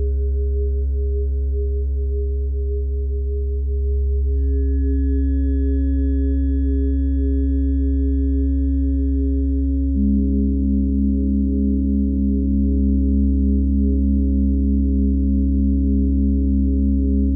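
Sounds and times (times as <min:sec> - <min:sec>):
tuning fork: 0:00.0 - 0:17.3
singing bowls: 0:03.8 - 0:13.0.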